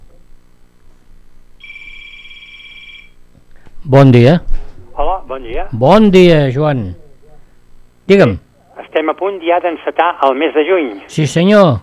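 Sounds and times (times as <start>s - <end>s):
low hum: 0.0s - 11.8s
telephone ringing for incoming call: 1.6s - 3.2s
speech: 3.8s - 4.6s, 5.3s - 7.0s, 8.1s - 8.4s, 9.0s - 11.8s.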